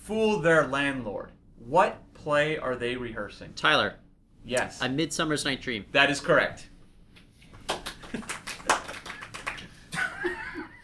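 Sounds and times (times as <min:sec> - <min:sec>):
speech: 0:00.1 - 0:06.7
small group clapping: 0:07.5 - 0:10.0.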